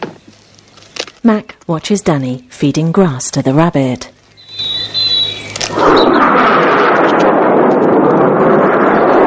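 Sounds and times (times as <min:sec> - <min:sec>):
speech: 0:01.3 - 0:04.1
fighter jet flying over: 0:05.1 - 0:09.2.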